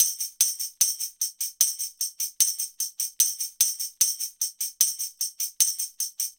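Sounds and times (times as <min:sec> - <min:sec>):
tambourine: 0:00.0 - 0:06.3.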